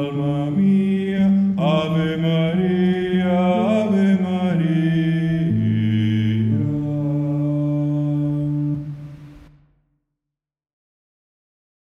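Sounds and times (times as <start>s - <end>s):
men singing: 0.0s - 9.1s.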